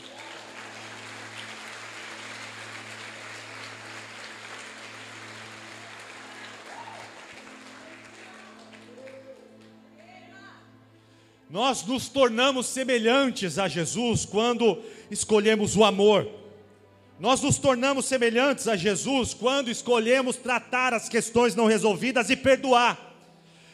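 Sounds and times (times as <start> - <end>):
strong audience applause: 0.0 - 9.8
speech: 11.5 - 16.4, 17.2 - 23.0.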